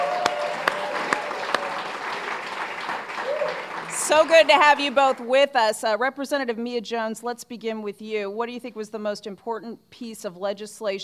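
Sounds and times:
audience applauding panel guests: 0:00.0 - 0:05.3
speech: 0:04.1 - 0:11.0.

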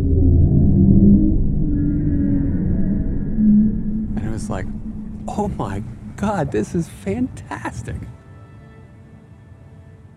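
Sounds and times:
bowhead whale low frequency moans: 0:00.0 - 0:07.4
speech: 0:04.5 - 0:08.2.

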